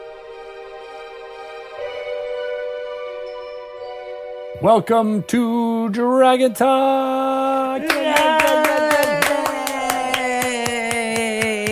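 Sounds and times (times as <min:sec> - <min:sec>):
speech: 0:04.6 - 0:09.2
laughter: 0:05.4 - 0:11.7
rhythmic hand claps: 0:07.4 - 0:11.7.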